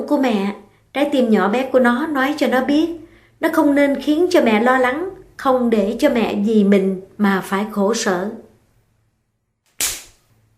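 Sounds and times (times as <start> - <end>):
speech: 0.1 - 8.4
slap across the face: 9.7 - 10.3.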